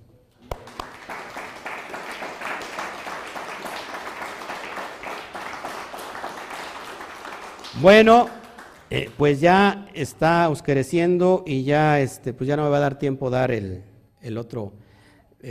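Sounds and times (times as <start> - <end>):
audience applause: 0.4 - 9.2
speech: 7.8 - 14.8.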